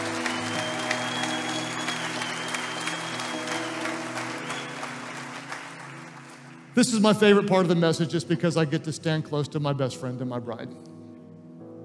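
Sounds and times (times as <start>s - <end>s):
audience clapping: 0.0s - 7.4s
speech: 6.8s - 10.9s.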